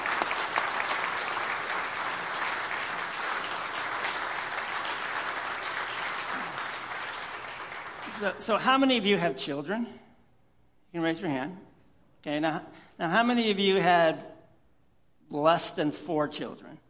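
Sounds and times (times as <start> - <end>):
audience applauding loudly: 0.0 - 8.6
speech: 8.2 - 10.0, 10.9 - 14.3, 15.3 - 16.8.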